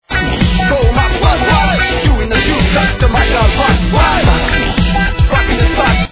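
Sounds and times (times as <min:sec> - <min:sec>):
rock music: 0:00.0 - 0:06.0.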